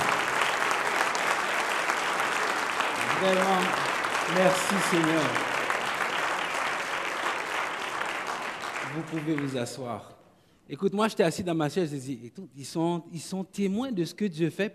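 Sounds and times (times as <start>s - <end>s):
audience applauding: 0.0s - 10.0s
speech: 3.2s - 5.6s, 9.0s - 14.7s.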